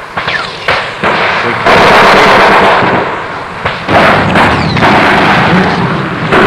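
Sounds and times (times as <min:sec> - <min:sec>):
whining ricochets: 0:00.2 - 0:01.0, 0:04.1 - 0:05.0
heavy gunfire: 0:00.2 - 0:06.4.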